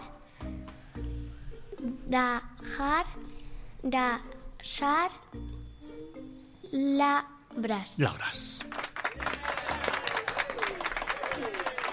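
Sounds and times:
speech: 1.8s - 3.2s, 3.8s - 5.5s, 6.7s - 8.7s
small audience applause: 8.7s - 11.9s.

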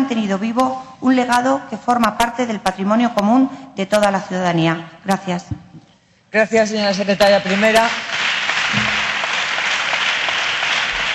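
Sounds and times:
speech: 0.1s - 5.6s, 6.3s - 8.1s
applause in a parliamentary chamber: 7.2s - 11.1s.

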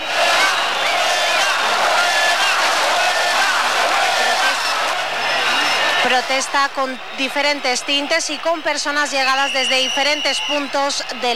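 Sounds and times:
protest crowd chanting: 0.0s - 8.4s
protest crowd shouting: 0.0s - 11.3s
speech: 6.1s - 11.3s
protest crowd whistling: 8.6s - 11.3s.

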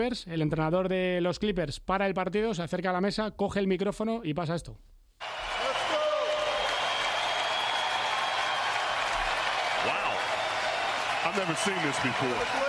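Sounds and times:
speech: 0.0s - 5.3s, 11.4s - 12.6s
arena crowd applauding: 5.2s - 12.6s.

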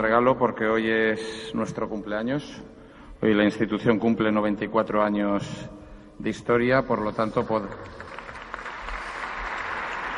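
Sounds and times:
speech: 0.0s - 8.2s
audience applause marking an institution's 94th anniversary in the Community of Madrid: 7.9s - 10.1s.

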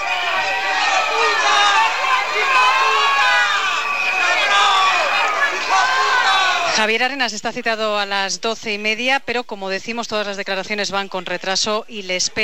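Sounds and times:
crowd booing: 0.0s - 6.8s
speech: 6.8s - 12.4s.

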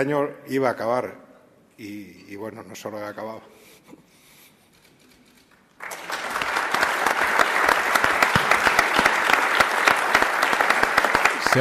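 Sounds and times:
speech: 0.0s - 1.2s, 1.8s - 4.0s
audience applauding in a room: 5.8s - 11.5s.

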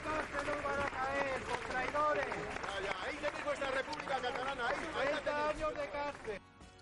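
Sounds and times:
crowd applauding outside court: 0.0s - 6.4s.

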